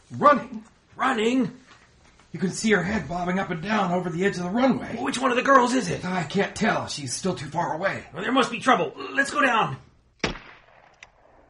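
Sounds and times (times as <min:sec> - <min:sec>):
speech: 0:00.1 - 0:01.6, 0:02.3 - 0:10.3
gunshot fired from the second-story window of a lodge: 0:10.2 - 0:11.4.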